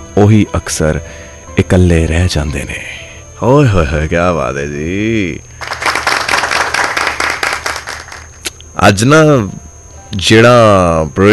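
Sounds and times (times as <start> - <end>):
speech: 0.2 - 5.5, 8.8 - 11.3
audience clapping at a poetry recital: 5.6 - 8.5.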